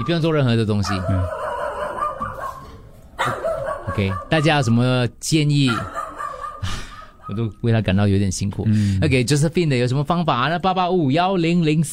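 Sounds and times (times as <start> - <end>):
speech: 0.0 - 1.4, 3.2 - 3.4, 4.0 - 6.0, 6.6 - 11.9
neighbour's dog barking and yelping: 0.0 - 4.8, 5.6 - 7.5.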